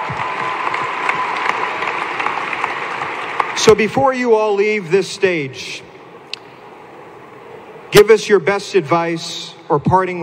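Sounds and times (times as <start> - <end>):
audience applause: 0.0 - 3.8
speech: 3.6 - 5.9, 7.9 - 10.2.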